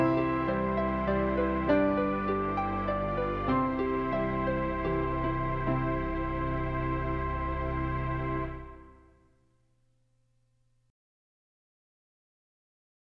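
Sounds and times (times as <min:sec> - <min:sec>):
solo with accompaniment: 0:00.0 - 0:09.4.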